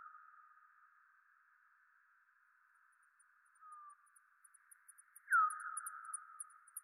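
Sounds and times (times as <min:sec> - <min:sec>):
bat echolocation calls: 0:03.7 - 0:06.8.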